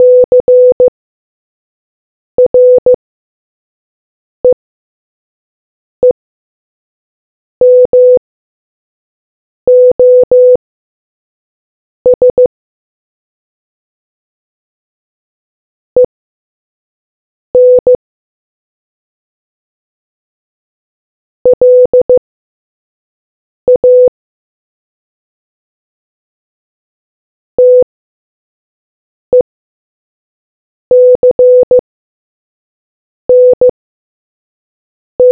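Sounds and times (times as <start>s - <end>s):
morse code beeps: 0.0s - 0.9s, 2.5s - 2.9s, 7.6s - 8.2s, 9.7s - 10.6s, 12.1s - 12.5s, 17.6s - 18.0s, 21.5s - 22.2s, 23.7s - 24.1s, 27.6s - 27.8s, 30.9s - 31.8s, 33.3s - 33.7s.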